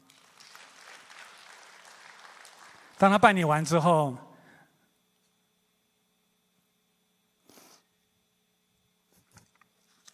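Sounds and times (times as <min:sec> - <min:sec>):
audience applause: 0:00.0 - 0:03.9
speech: 0:03.0 - 0:04.3.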